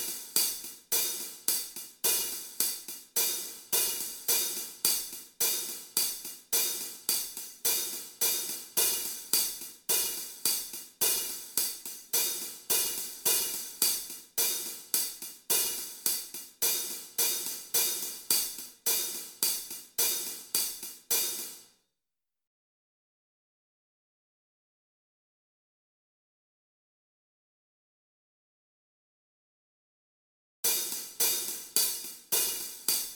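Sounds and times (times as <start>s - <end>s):
hi-hats: 0.0s - 21.7s, 30.7s - 33.1s.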